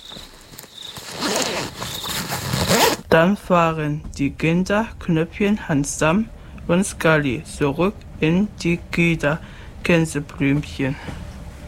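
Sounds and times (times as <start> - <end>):
fabric rustling: 0.0 - 3.0
zipper pulled along a travel bag: 0.9 - 3.0
speech: 3.1 - 11.2.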